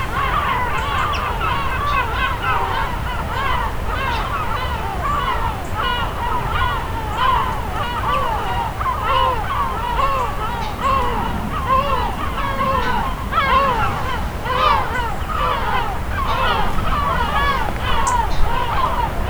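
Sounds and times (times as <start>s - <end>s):
gulls calling at the Lérins islands: 0.0s - 19.2s
sea at the Lérins islands: 0.0s - 19.2s.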